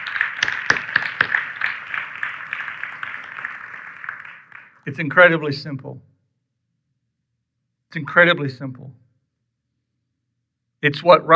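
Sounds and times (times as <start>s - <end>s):
audience clapping: 0.0s - 5.2s
speech: 4.9s - 6.1s, 7.9s - 9.0s, 10.8s - 11.3s.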